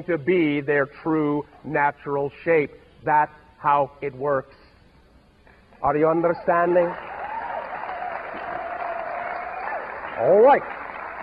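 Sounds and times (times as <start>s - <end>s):
speech: 0.0s - 4.6s, 5.8s - 7.1s, 10.2s - 10.8s
audience applause: 6.7s - 11.2s.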